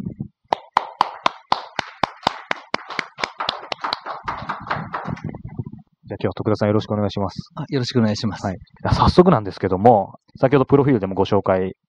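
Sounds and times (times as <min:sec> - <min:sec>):
audience applause welcoming a guest: 0:00.5 - 0:05.3
speech: 0:06.1 - 0:11.8.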